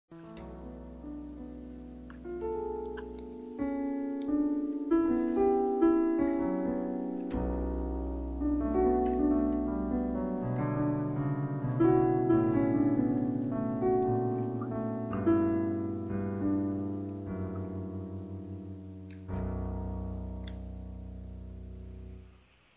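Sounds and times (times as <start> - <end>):
piano: 0.1 - 22.7.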